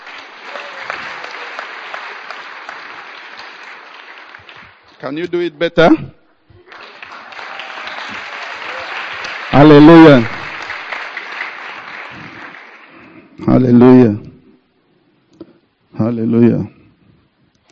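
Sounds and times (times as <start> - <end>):
church audience clapping: 0.0 - 5.5, 6.6 - 13.7
speech: 5.0 - 6.2, 9.6 - 10.4, 13.5 - 14.3, 16.1 - 16.8.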